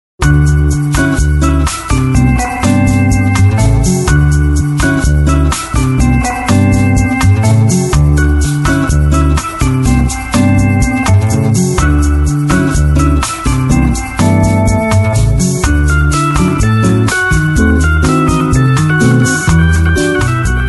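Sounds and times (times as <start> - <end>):
bossa nova music: 0.2 - 20.6.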